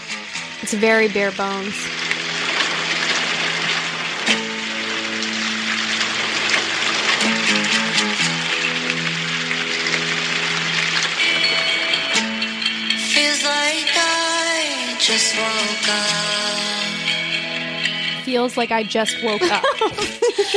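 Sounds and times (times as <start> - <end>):
rain falling: 0.0 - 20.5
sharp drips: 0.0 - 20.5
speech: 0.6 - 2.1, 18.4 - 20.5
laughter: 19.3 - 20.5.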